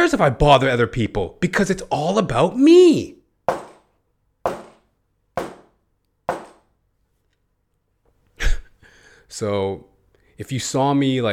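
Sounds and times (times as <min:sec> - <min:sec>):
speech: 0:00.1 - 0:03.2, 0:09.3 - 0:11.3
neighbor banging on the wall: 0:03.5 - 0:03.9, 0:04.5 - 0:06.7.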